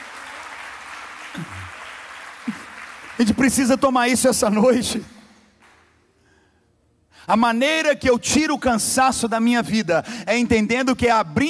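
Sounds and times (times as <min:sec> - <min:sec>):
church congregation applauding during a sermon: 0:00.0 - 0:06.0
speech: 0:01.4 - 0:01.8, 0:03.2 - 0:05.2, 0:07.3 - 0:11.4.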